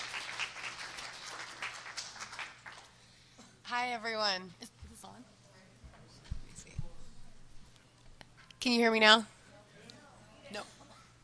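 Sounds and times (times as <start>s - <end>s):
audience applause welcoming a speaker to the stage: 0.0s - 3.0s
speech: 3.8s - 5.2s, 8.6s - 9.3s, 10.5s - 10.7s.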